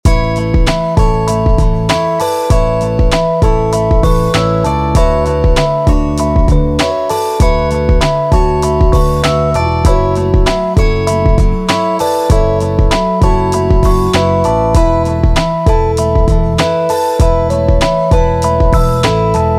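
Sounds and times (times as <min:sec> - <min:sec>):
music: 0:00.0 - 0:19.5.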